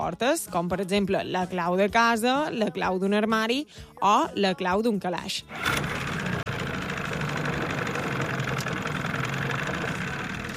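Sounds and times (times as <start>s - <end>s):
speech: 0.0s - 6.0s
car engine started with ignition key, idling: 5.5s - 10.5s.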